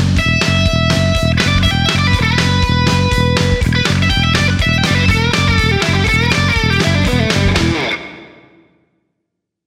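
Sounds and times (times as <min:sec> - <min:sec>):
backing guitar: 0:00.2 - 0:08.6.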